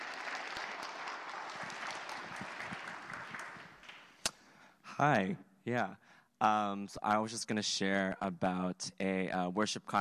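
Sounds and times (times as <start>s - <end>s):
audience clapping to welcome a speaker: 0.0s - 4.4s
speech: 5.0s - 9.9s.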